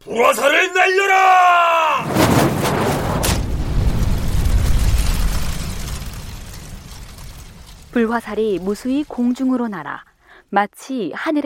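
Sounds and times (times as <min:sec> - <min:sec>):
speech: 0:00.0 - 0:01.4, 0:08.0 - 0:11.4
cannon fire booming: 0:02.0 - 0:09.6.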